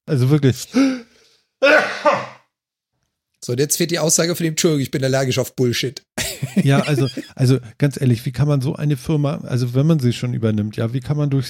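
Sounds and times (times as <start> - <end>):
speech: 0.1 - 1.0, 3.4 - 11.4
sneeze: 1.6 - 2.5
laughter: 6.2 - 7.4.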